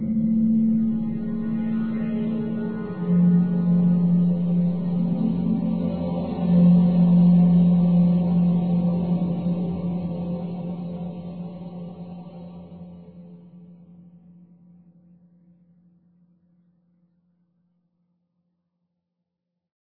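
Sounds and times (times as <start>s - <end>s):
drone: 0.0s - 13.4s.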